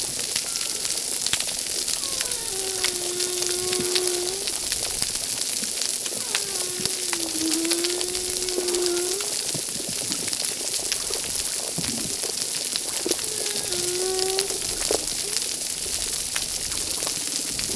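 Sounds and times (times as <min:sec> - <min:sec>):
humpback whale singing at a reef: 0:00.4 - 0:09.6, 0:10.7 - 0:17.7.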